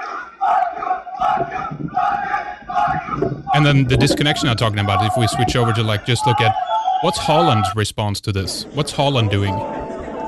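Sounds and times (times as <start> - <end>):
large crowd screaming at police during riot: 0.0 - 7.8
rumbling commotion: 1.2 - 5.8
speech: 3.2 - 9.9.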